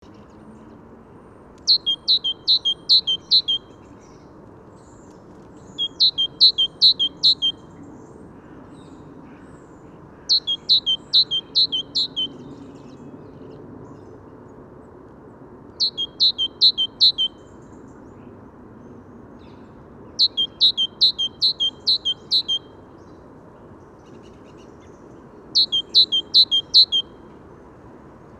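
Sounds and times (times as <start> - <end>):
great tit calling two-note phrases: 1.6 - 3.8, 5.6 - 7.6, 10.2 - 12.4, 15.8 - 17.4, 20.2 - 22.7, 25.6 - 27.1.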